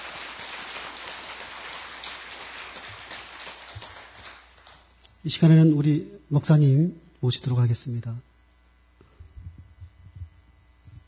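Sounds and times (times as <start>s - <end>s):
audience clapping: 0.0s - 5.0s
speech: 5.2s - 8.3s.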